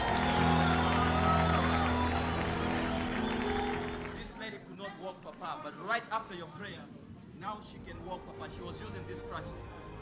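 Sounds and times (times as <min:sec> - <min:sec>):
audience applause: 0:00.0 - 0:04.4
speech: 0:05.0 - 0:09.8.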